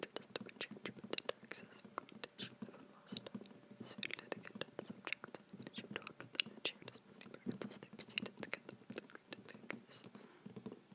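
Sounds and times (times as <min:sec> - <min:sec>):
soft unintelligible whispering: 0:00.0 - 0:10.6.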